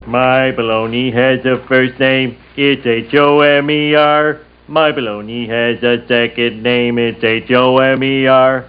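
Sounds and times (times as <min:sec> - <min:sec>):
person singing: 0:00.0 - 0:08.6.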